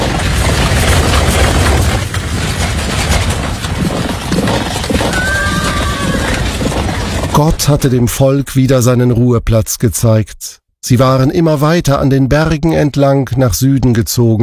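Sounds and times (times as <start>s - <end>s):
war chariots rattling thunderously: 0.0s - 8.1s
speech: 7.4s - 14.4s.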